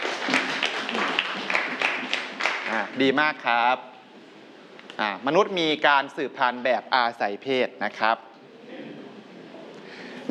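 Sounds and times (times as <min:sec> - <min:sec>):
students in a classroom applauding: 0:00.0 - 0:03.0
speech: 0:02.7 - 0:03.9, 0:05.0 - 0:08.3.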